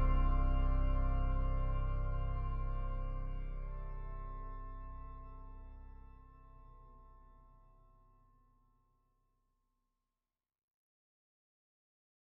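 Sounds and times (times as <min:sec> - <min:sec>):
organ sonata: 0:00.0 - 0:06.7.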